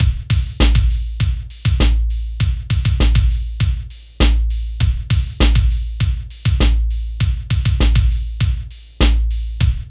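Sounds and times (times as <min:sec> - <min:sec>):
hip hop music: 0:00.0 - 0:09.8.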